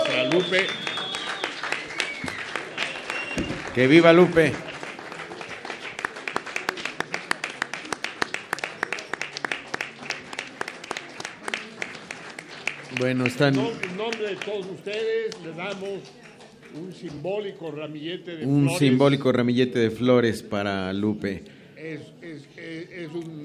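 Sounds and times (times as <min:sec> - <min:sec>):
audience applause and ovation: 0:00.0 - 0:17.1
speech: 0:00.3 - 0:00.9, 0:03.4 - 0:04.7, 0:13.0 - 0:23.4.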